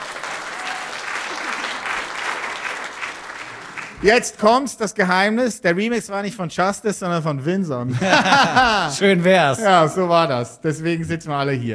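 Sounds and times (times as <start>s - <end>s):
audience applause: 0.0s - 4.2s
speech: 4.0s - 11.7s
laughter: 7.9s - 10.0s.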